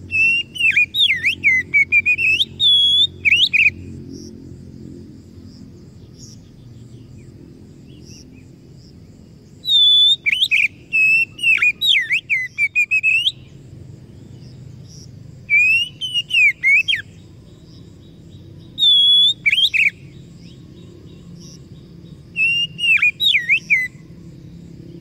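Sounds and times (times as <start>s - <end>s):
Oriental magpie-robin song: 0.0s - 3.9s, 9.6s - 13.7s, 14.4s - 24.1s.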